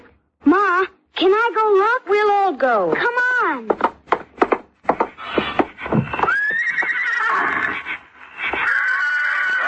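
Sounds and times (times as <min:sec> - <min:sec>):
speech: 0:00.7 - 0:03.7
hoof clops and thumps: 0:02.9 - 0:09.6
Mexican saddle pony neighing: 0:05.2 - 0:09.6.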